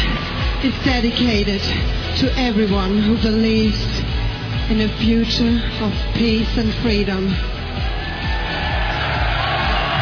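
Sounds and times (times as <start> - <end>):
large crowd cheering and yelling: 0.0 - 1.1, 7.4 - 10.0
speech: 0.6 - 4.0, 4.7 - 7.5.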